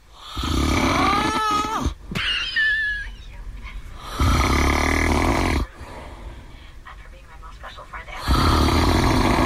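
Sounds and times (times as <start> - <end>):
loud rough snoring: 0.2 - 1.9, 4.0 - 5.7, 8.2 - 9.4.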